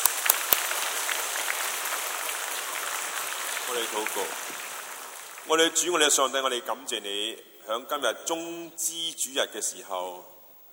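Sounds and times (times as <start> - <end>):
audience applause: 0.0 - 6.2
speech: 3.7 - 4.7, 5.5 - 10.7.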